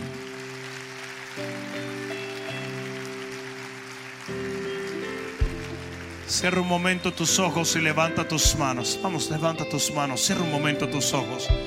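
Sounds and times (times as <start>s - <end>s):
audience applause: 0.0s - 8.1s
sustained keyboard chords: 0.0s - 11.6s
speech: 6.3s - 11.6s.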